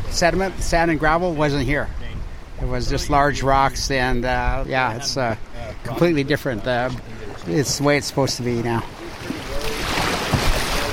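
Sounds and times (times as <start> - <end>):
steady rushing river water: 0.0 - 10.9
speech: 0.2 - 2.0, 2.6 - 9.0
paddle strokes from a small boat on a river: 6.5 - 10.9.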